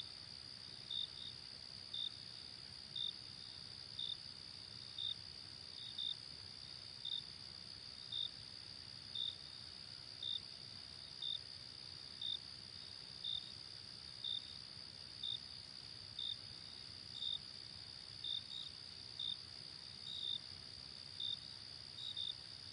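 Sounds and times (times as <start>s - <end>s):
cricket chirping: 0.0s - 22.7s.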